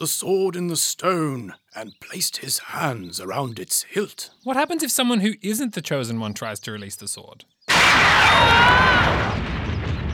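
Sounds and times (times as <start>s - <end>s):
speech: 0.0s - 9.4s
lightning strike incinerating someone: 7.7s - 10.1s.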